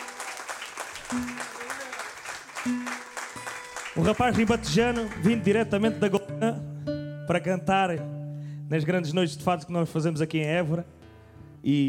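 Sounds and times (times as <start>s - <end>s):
audience applause: 0.0s - 5.5s
speech: 1.1s - 1.5s, 2.6s - 3.0s, 4.0s - 6.7s, 7.3s - 11.0s, 11.6s - 11.8s.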